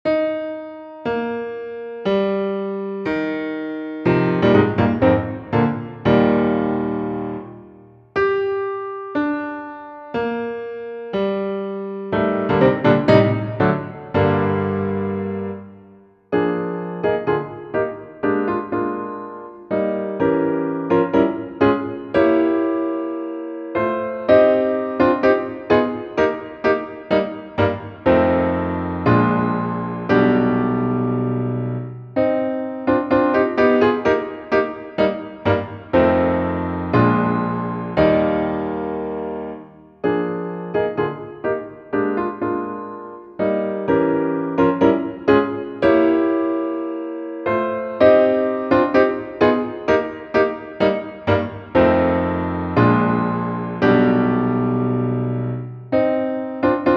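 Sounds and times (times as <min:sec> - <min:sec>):
piano: 0:00.0 - 0:56.9.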